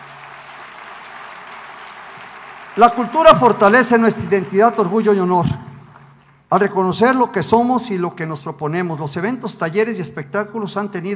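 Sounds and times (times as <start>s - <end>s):
applause at a public event honouring teachers, parents and athletes: 0.0s - 6.3s
speech: 2.8s - 5.6s, 6.5s - 11.1s.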